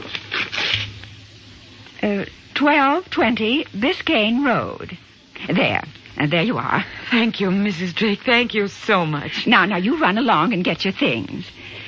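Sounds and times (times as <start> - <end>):
paper rustling: 0.0 - 1.1
low steady hum: 0.0 - 11.8
speech: 2.0 - 11.6.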